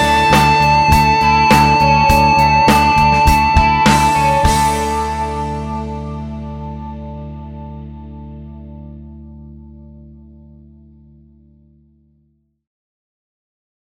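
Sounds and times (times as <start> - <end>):
guitar amplifier with one 10-inch Celestion Gold speaker: 0.0 - 12.3.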